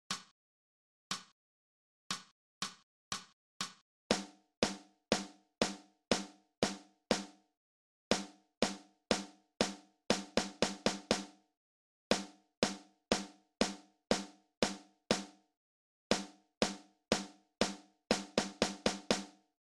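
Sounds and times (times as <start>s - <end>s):
snare drum: 3.6s - 7.4s, 8.1s - 11.4s, 12.1s - 15.4s, 16.1s - 19.4s.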